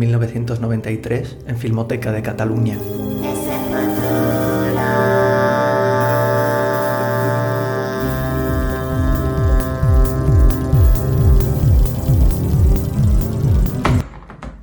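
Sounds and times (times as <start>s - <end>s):
speech: 0.0s - 3.4s
improvised tune on traditional frame drums from Lleida: 2.8s - 14.0s.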